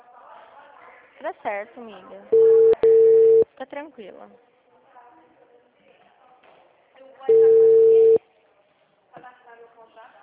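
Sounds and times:
speech: 0:01.2 - 0:02.8, 0:03.6 - 0:04.5
unanswered telephone call ringing tone: 0:02.3 - 0:03.4, 0:07.3 - 0:08.2.

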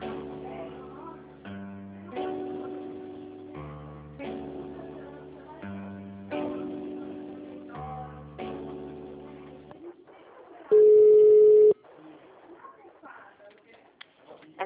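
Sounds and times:
loud steady beep: 0:10.7 - 0:11.8
telephone ringing with an electronic ringtone: 0:10.8 - 0:11.8.

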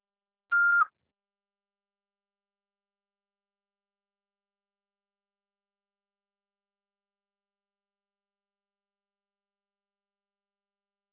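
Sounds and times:
answering machine beep tone: 0:00.5 - 0:00.9.

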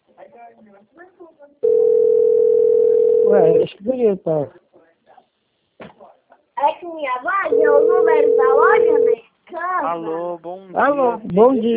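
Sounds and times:
speech: 0:00.5 - 0:01.9, 0:03.3 - 0:04.6, 0:06.8 - 0:11.7
ringing tone of an outgoing telephone call: 0:01.6 - 0:03.6, 0:07.5 - 0:09.2.

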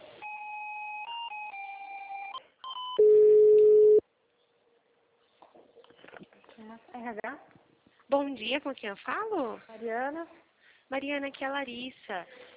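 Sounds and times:
telephone line two-tone beeps as an office call is put through: 0:00.2 - 0:04.0
speech: 0:07.2 - 0:12.5.

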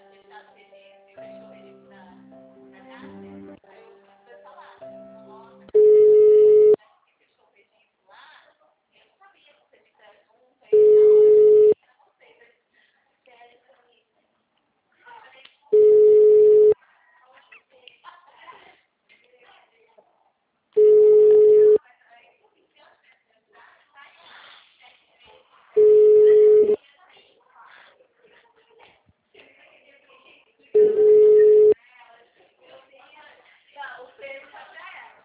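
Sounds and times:
telephone line beeps while a call is transferred: 0:05.8 - 0:06.8, 0:10.8 - 0:11.8, 0:15.8 - 0:16.8, 0:20.8 - 0:21.8, 0:25.8 - 0:26.8, 0:30.8 - 0:31.8.

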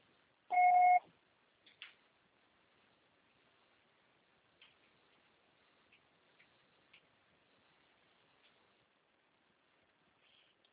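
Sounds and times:
answering machine beep: 0:00.5 - 0:01.0.

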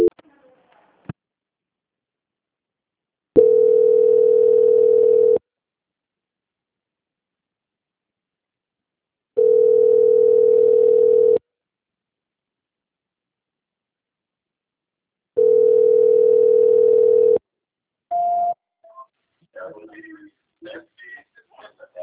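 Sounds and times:
telephone tones during a call transfer: 0:03.4 - 0:05.4, 0:09.4 - 0:11.4, 0:15.4 - 0:17.4.

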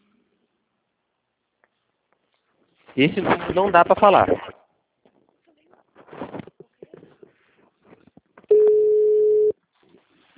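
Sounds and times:
speech: 0:03.0 - 0:04.5
telephone line tone on an unanswered call: 0:08.5 - 0:09.6.

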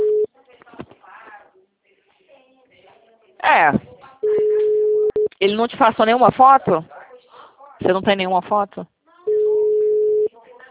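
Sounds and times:
phone-line tone while placing a call: 0:00.0 - 0:00.3, 0:04.2 - 0:05.3, 0:09.3 - 0:10.3
speech: 0:03.5 - 0:03.8, 0:05.4 - 0:06.9, 0:07.8 - 0:08.9.

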